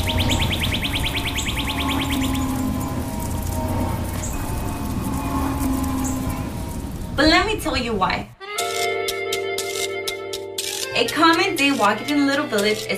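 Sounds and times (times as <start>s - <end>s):
birds singing: 0.0s - 8.4s
garden sprinklers watering: 0.0s - 8.9s, 10.6s - 12.9s
rapid ticking trill: 0.0s - 12.9s
speech: 7.2s - 8.3s, 11.0s - 12.9s.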